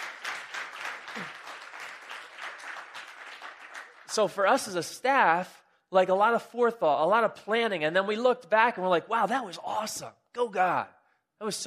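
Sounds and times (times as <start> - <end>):
audience applause: 0.0 - 4.3
speech: 1.2 - 1.4, 4.2 - 11.6.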